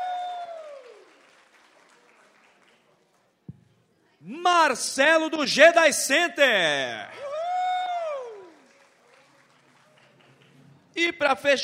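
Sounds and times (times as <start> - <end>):
audience applause: 0.0 - 3.3, 7.1 - 10.9
speech: 4.3 - 7.2, 11.2 - 11.6.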